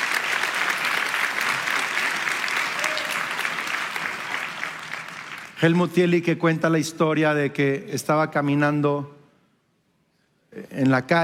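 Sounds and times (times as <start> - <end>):
audience applauding: 0.0 - 5.8
speech: 5.6 - 9.2, 10.6 - 11.2.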